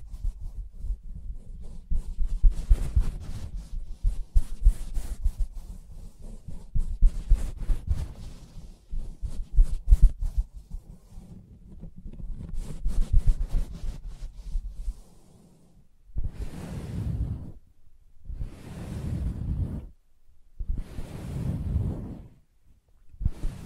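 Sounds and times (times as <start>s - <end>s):
tapping and scratching on a fabric surface: 0.0s - 15.0s
slow breathy rubbing strokes: 0.0s - 20.0s, 20.6s - 22.6s, 23.2s - 23.6s.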